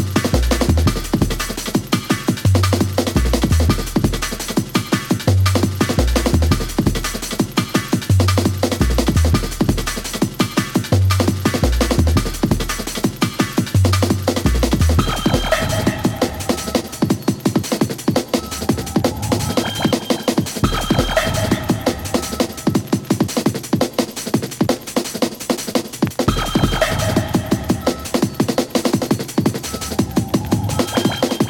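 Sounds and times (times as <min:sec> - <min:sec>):
jungle music: 0:00.0 - 0:31.4.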